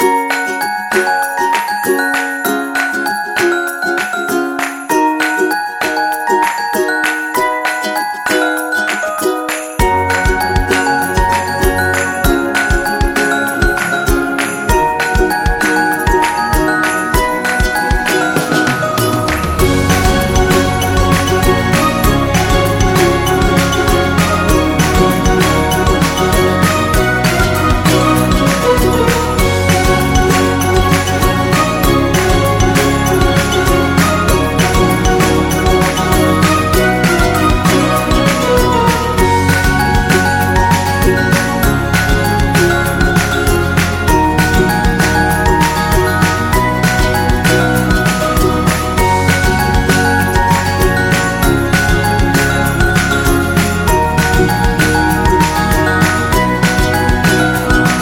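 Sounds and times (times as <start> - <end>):
upbeat winter Christmas music: 0.0 - 57.9.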